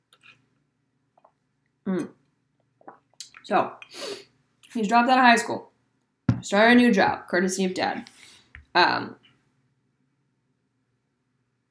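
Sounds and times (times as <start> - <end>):
wet mouth sounds of sipping water: 1.2 - 3.9
speech: 1.9 - 2.2, 3.5 - 4.1, 4.7 - 5.7, 6.4 - 8.1, 8.8 - 9.2.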